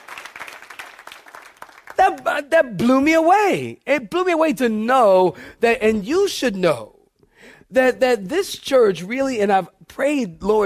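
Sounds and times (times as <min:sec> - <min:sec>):
audience clapping hands: 0:00.0 - 0:02.5
speech: 0:02.0 - 0:06.9, 0:07.7 - 0:10.6.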